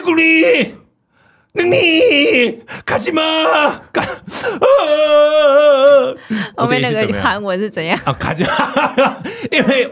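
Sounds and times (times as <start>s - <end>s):
speech: 0.1s - 0.8s, 1.5s - 9.9s
acted exaggerated crying wail: 1.6s - 6.2s
laughter: 8.0s - 9.9s.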